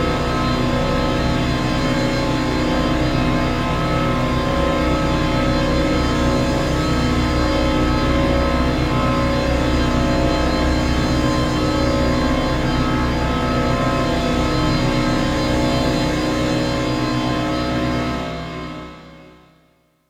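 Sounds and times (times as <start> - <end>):
horror drone: 0.0 - 19.6.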